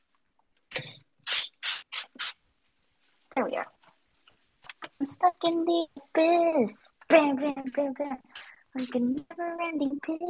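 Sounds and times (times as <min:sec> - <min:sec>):
spray bottle spritzing glass cleaner: 0:00.7 - 0:02.4
speech: 0:03.4 - 0:03.8, 0:05.0 - 0:10.2.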